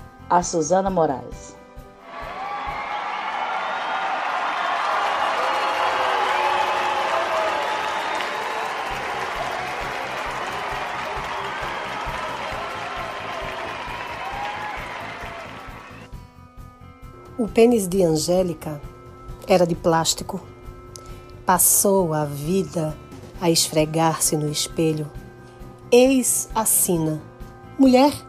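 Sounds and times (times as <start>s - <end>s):
speech: 0.3s - 1.6s, 17.4s - 18.9s, 19.5s - 20.5s, 21.5s - 25.2s, 25.9s - 28.2s
audience applause: 2.1s - 16.1s.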